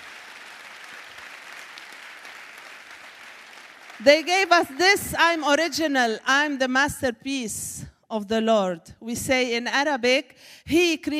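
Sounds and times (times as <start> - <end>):
audience clapping hands: 0.0 - 5.2
speech: 4.0 - 11.1.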